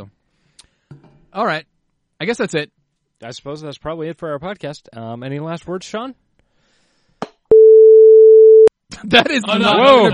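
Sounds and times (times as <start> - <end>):
speech: 1.3 - 6.2, 9.0 - 10.1
censor beep: 7.5 - 8.7.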